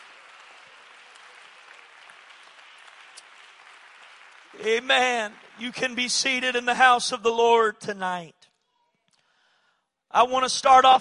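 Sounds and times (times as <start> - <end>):
audience clapping hands in praise: 0.0 - 7.0
speech: 4.5 - 8.4, 10.1 - 10.9.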